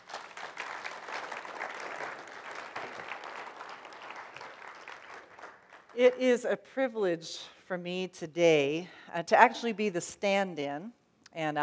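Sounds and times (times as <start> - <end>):
audience applause at a church rededication service: 0.0 - 6.0
speech: 6.0 - 11.6.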